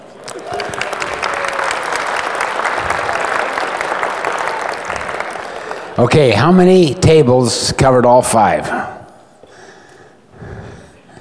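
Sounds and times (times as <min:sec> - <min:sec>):
crowd clapping: 0:00.0 - 0:06.7
speech: 0:06.0 - 0:08.9.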